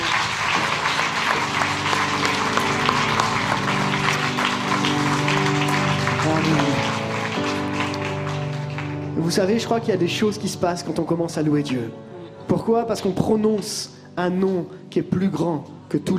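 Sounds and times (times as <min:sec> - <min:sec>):
audience applauding: 0:00.0 - 0:09.8
speech: 0:09.3 - 0:16.1.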